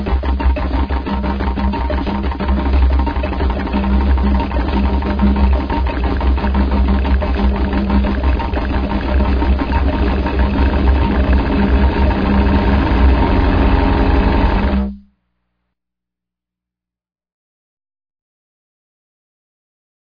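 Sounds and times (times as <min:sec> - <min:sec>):
robot drum solo: 0:00.0 - 0:15.0.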